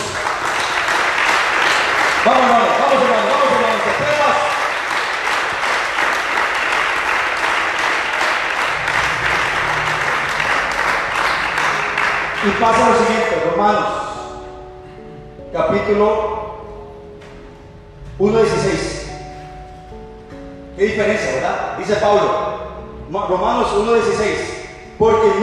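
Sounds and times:
audience applauding loudly: 0:00.0 - 0:13.4
speech: 0:12.6 - 0:14.0, 0:15.7 - 0:16.3, 0:18.2 - 0:19.0, 0:20.8 - 0:22.5, 0:23.1 - 0:25.4.

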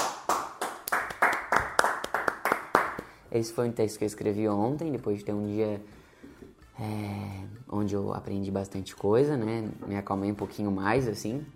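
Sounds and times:
hands clapping: 0:00.0 - 0:03.2
speech: 0:03.3 - 0:06.0, 0:06.8 - 0:11.5.

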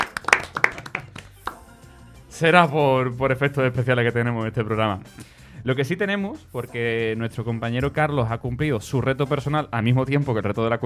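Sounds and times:
hands clapping: 0:00.0 - 0:01.8
speech: 0:02.4 - 0:10.8.

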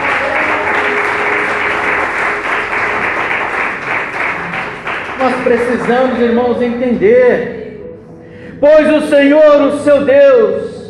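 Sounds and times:
audience applause: 0:00.0 - 0:06.4
speech: 0:05.4 - 0:07.6, 0:08.6 - 0:10.7.

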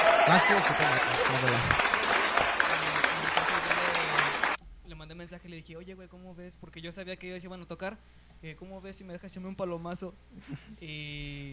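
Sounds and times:
audience applause: 0:00.0 - 0:04.6
speech: 0:00.3 - 0:02.1, 0:05.3 - 0:11.5.

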